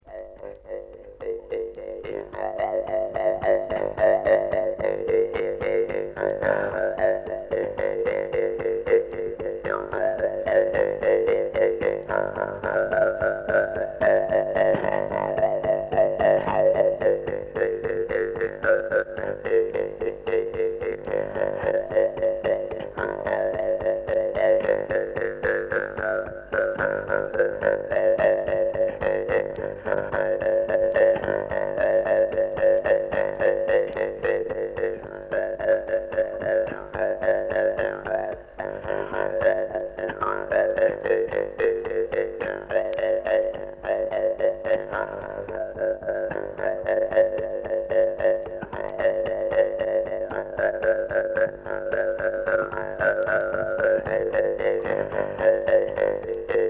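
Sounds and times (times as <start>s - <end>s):
Evenki Eveny Negidaltsy Jew's harp: 0.0s - 56.6s.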